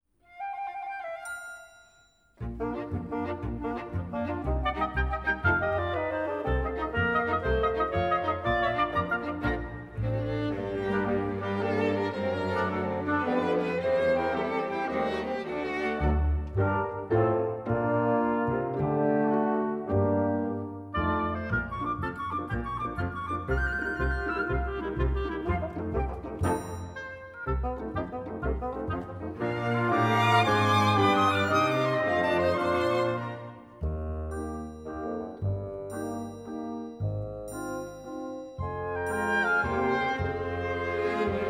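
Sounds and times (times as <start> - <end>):
opera instrumental for singing: 2.4 - 37.8, 38.6 - 41.4.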